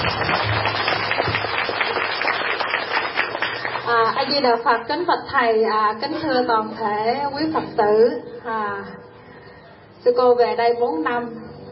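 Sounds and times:
Buddhist congregation applauding at a monastery in Canada: 0.0 - 4.3
speech: 4.2 - 9.0, 10.0 - 11.4.

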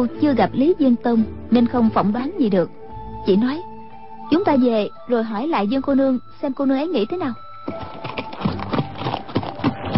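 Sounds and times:
speech: 0.0 - 3.7, 4.3 - 8.0
galloping horse hoofbeats: 7.5 - 9.9.

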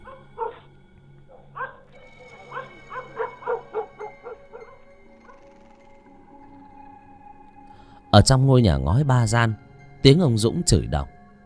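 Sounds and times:
pack of dogs barking: 0.0 - 5.9
speech: 8.2 - 11.2.

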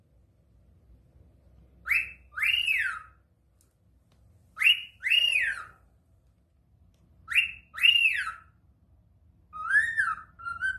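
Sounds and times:
cockatiel whistling calls: 1.8 - 3.2, 4.6 - 5.8, 7.3 - 8.6, 9.5 - 10.7.

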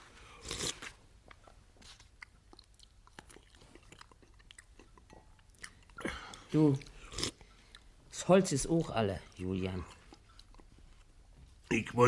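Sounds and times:
person chewing food: 0.4 - 7.9, 9.2 - 11.2
speech: 6.5 - 6.9, 8.3 - 10.0, 11.7 - 12.0.

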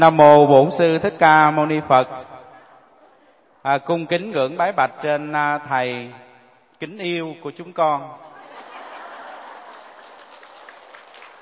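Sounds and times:
speech: 0.0 - 2.3, 3.6 - 8.3
laughter: 8.2 - 10.9
applause of Buddhist congregation: 8.8 - 11.4.

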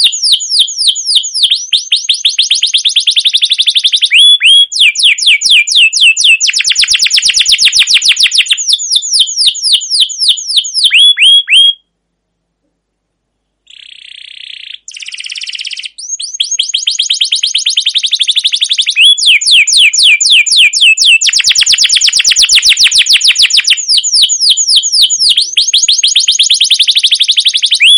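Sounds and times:
canary long rolling trilled tutor song: 0.0 - 11.9, 13.5 - 27.9.

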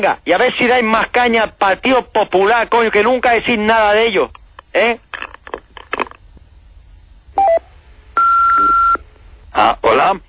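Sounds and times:
speech: 0.0 - 5.3, 9.6 - 10.2
telephone answering machine beeps after voicemail greeting: 7.4 - 9.0.

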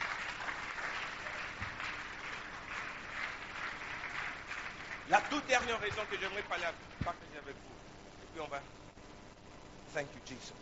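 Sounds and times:
audience applauding: 0.0 - 7.2
speech: 5.1 - 8.8, 9.9 - 10.6.

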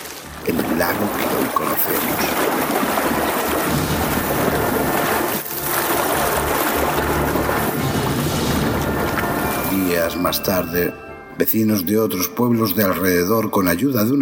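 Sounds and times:
roaring rush of water from a whirlpool surging up from the ground: 0.0 - 10.8
speech: 0.5 - 3.0, 9.8 - 14.1.

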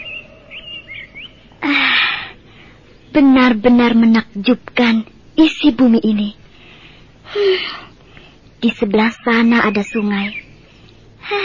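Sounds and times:
birds chirping in a forest: 0.0 - 7.1, 7.7 - 11.4
speech: 3.2 - 6.4, 7.3 - 7.9, 8.6 - 10.4.

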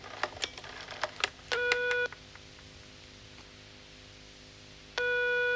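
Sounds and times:
telephone number being dialed: 0.2 - 2.1
telephone ringing: 0.2 - 2.1, 5.0 - 5.5.

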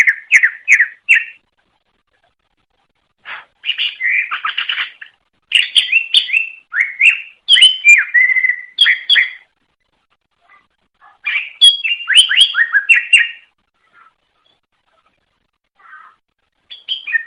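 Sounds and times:
leafbird chattering whistled song: 0.0 - 1.4, 3.3 - 9.5, 11.0 - 14.7, 16.7 - 17.2.

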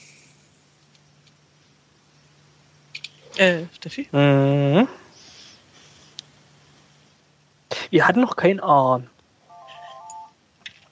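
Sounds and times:
speech: 3.4 - 5.0, 7.9 - 9.1
mobile phone ringtone electronic melody: 9.5 - 10.4.

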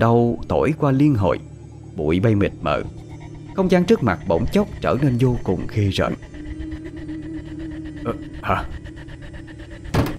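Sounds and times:
speech: 0.0 - 3.0, 3.6 - 6.3, 8.0 - 8.8
steady low hum: 0.0 - 10.1
door banging shut: 9.9 - 10.1.

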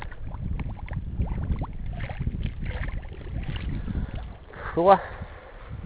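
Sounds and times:
water gurgling into a small bottle: 0.0 - 4.5
speech: 4.8 - 5.2.

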